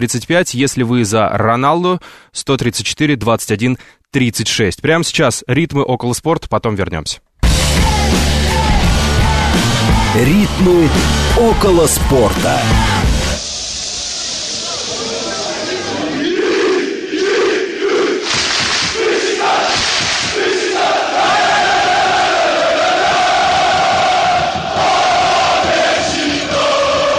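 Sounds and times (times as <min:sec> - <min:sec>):
speech: 0:00.0 - 0:08.2, 0:10.1 - 0:13.0
loud football fans cheering in stadium: 0:07.4 - 0:27.1.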